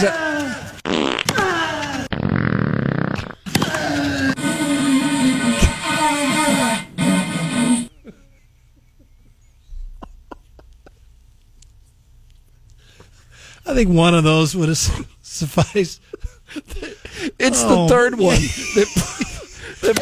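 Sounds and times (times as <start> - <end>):
speech: 0.0 - 0.4, 13.8 - 19.1, 19.8 - 20.0
long loud rasping farts: 0.8 - 1.4, 2.0 - 7.9
laughter: 7.2 - 11.2, 15.6 - 20.0.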